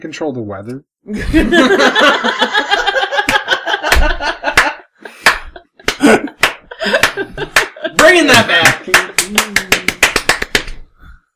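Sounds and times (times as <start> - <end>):
speech: 0.0 - 2.8
laughter: 1.1 - 9.9
hand claps: 3.2 - 10.9.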